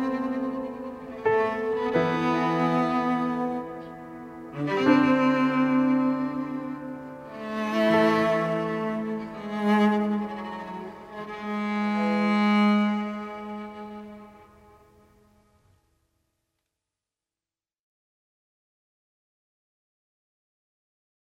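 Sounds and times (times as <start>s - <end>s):
piano: 0.0s - 15.6s.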